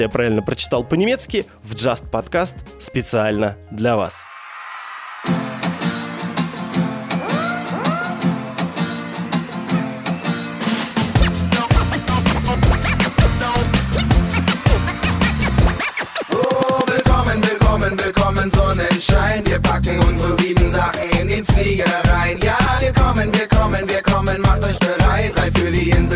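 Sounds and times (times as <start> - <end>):
speech: 0.0 - 4.3
German-language pop song with sung vocals over a steady drum beat: 5.2 - 14.9, 15.7 - 26.1.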